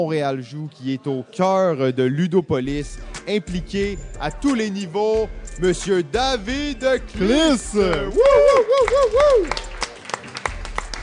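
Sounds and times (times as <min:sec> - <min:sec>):
speech: 0:00.0 - 0:09.7
crowd applauding: 0:07.4 - 0:11.0
crowd cheering with whoops and shouts: 0:07.9 - 0:11.0.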